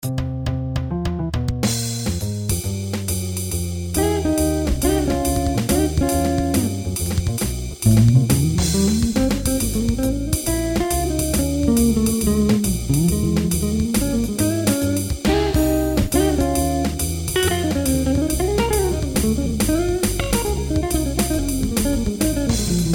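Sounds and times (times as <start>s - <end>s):
jazz improvisation: 0.0s - 22.9s.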